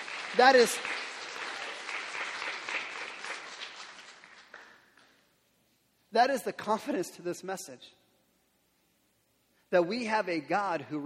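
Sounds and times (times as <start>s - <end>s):
crowd clapping: 0.0s - 5.2s
speech: 0.3s - 1.0s, 6.1s - 8.0s, 9.7s - 11.0s.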